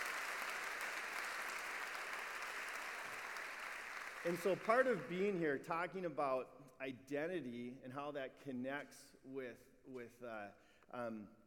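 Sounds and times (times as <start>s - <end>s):
audience clapping: 0.0s - 5.4s
speech: 4.2s - 11.4s.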